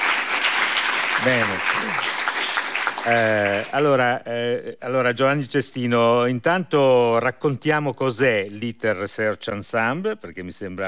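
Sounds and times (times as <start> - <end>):
audience applause: 0.0 - 3.9
speech: 1.2 - 2.2, 3.0 - 10.8.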